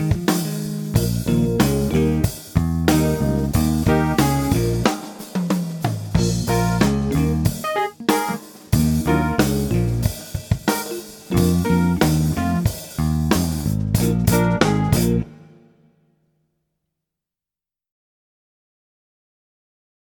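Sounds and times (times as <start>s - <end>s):
blues rock percussion: 0.0s - 15.7s.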